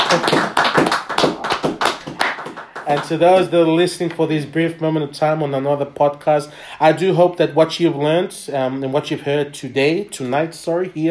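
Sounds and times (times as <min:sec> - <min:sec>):
hand clapping: 0:00.0 - 0:03.5
speech: 0:00.1 - 0:00.4, 0:02.9 - 0:11.0.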